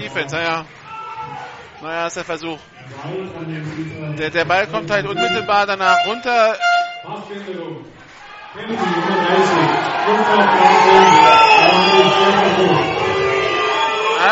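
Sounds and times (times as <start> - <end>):
speech: 0.0 - 13.0
agitated stadium crowd shouting: 0.7 - 1.8, 8.1 - 14.3.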